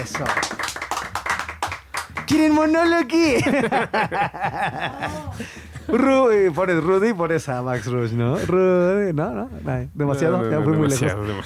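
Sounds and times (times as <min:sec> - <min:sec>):
speech: 0:00.0 - 0:00.5, 0:02.3 - 0:11.4
applause: 0:00.0 - 0:03.1
laughter: 0:03.2 - 0:06.9.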